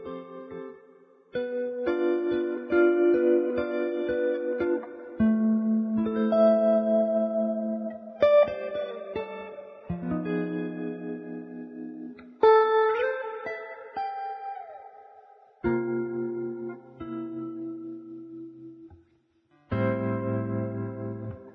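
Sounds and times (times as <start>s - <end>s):
electric guitar melody: 0.0s - 21.5s.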